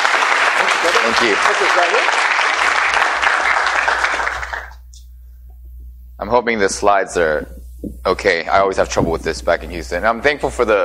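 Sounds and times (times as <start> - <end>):
audience applause welcoming a pastor as guest speaker: 0.0 - 4.8
speech: 1.0 - 2.4, 6.2 - 10.8.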